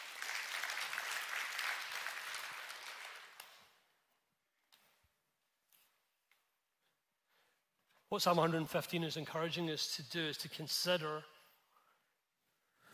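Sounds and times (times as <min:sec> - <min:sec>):
audience applause: 0:00.0 - 0:03.6
speech: 0:08.1 - 0:11.3.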